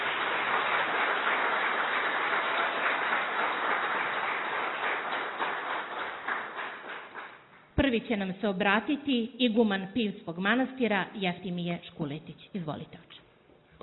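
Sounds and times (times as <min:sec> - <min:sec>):
audience applause at a public gathering in Herceg Novi: 0:00.0 - 0:07.5
speech: 0:07.9 - 0:13.2.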